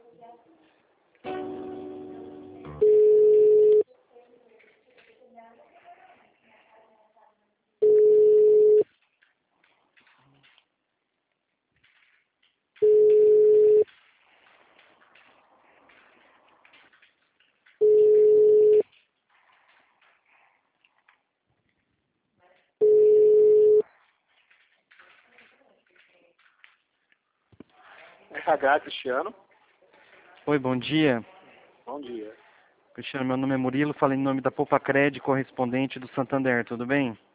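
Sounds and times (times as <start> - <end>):
telephone line tones as a call to a city hall is transferred: 2.8 - 3.8, 7.8 - 8.8, 12.8 - 13.8, 17.8 - 18.8, 22.8 - 23.8
speech: 28.5 - 29.5, 30.4 - 32.4, 33.0 - 37.3.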